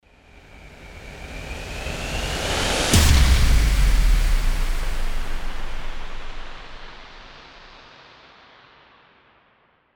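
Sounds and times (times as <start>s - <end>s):
rising impact: 2.6s - 7.8s.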